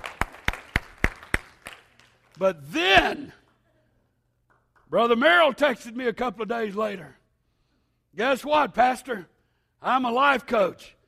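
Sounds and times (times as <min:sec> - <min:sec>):
hand claps: 0:00.0 - 0:02.4, 0:04.4 - 0:05.0
speech: 0:02.4 - 0:03.4, 0:04.9 - 0:07.2, 0:08.1 - 0:11.0.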